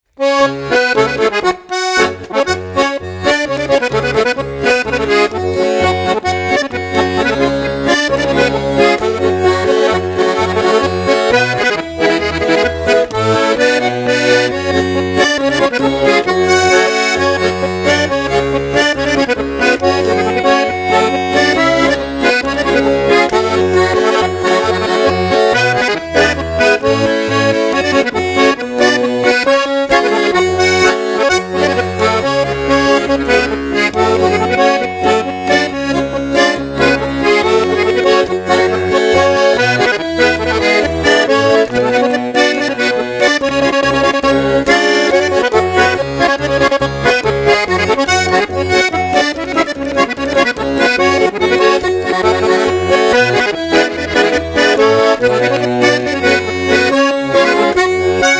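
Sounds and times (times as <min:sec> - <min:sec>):
polka music: 0:00.0 - 0:58.3.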